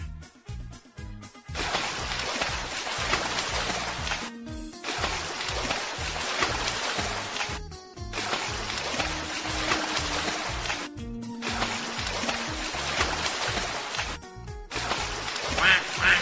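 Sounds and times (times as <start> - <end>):
water splashing: 1.5 - 16.2
ducks swimming in a river quacking: 15.2 - 16.2.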